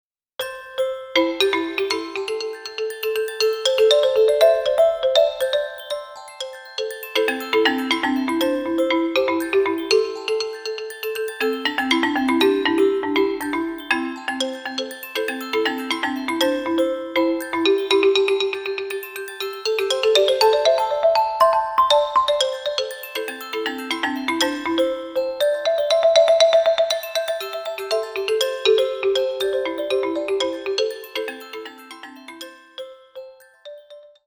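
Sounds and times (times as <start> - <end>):
ringtone: 0.6 - 34.2.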